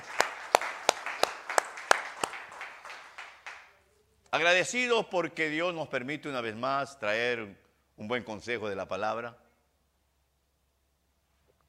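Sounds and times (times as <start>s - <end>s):
audience clapping in unison: 0.0s - 3.8s
speech: 4.4s - 9.4s.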